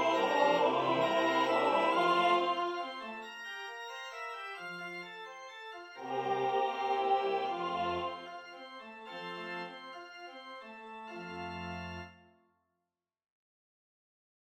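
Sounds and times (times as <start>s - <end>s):
soprano singing a sacred piece in measured time: 0.0s - 3.2s, 6.0s - 8.3s.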